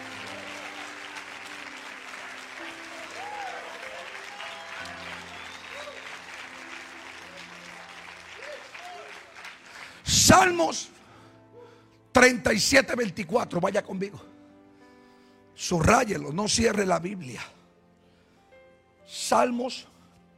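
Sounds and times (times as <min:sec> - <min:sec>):
audience applause: 0:00.0 - 0:10.3
speech: 0:10.3 - 0:10.9, 0:12.2 - 0:14.4, 0:15.6 - 0:17.6, 0:19.1 - 0:20.3.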